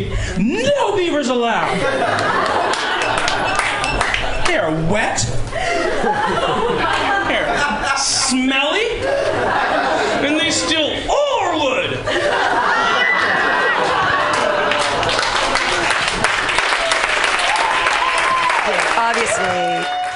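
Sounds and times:
speech: 0.4s - 2.9s, 4.5s - 6.8s, 8.0s - 12.2s, 19.0s - 20.0s
audience laughing: 1.6s - 4.7s, 5.4s - 17.7s
audience cheering: 1.9s - 4.7s, 12.3s - 20.1s
audience clapping: 2.0s - 4.7s, 6.8s - 7.2s, 13.0s - 20.1s.

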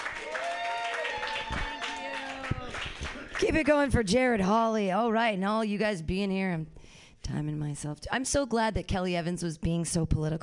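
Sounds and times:
people cheering and whooping: 0.0s - 3.3s
audience clapping for the next comic: 0.0s - 3.9s
speech: 3.4s - 10.4s.

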